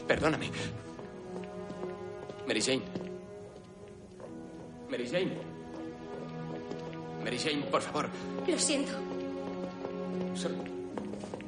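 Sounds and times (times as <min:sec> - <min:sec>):
hurried footsteps of a woman running out of a house: 0:00.0 - 0:11.4
sustained tonal music: 0:00.0 - 0:11.4
speech: 0:00.1 - 0:00.9, 0:02.5 - 0:03.0, 0:04.9 - 0:05.5, 0:07.2 - 0:09.1, 0:10.4 - 0:10.7.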